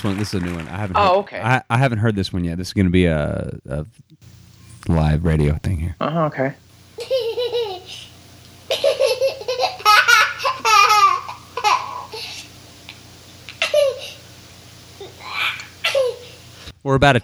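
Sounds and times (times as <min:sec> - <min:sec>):
speech: 0:00.0 - 0:07.2, 0:16.8 - 0:17.2
steady low hum: 0:04.2 - 0:16.7
young children laughing: 0:04.2 - 0:16.7.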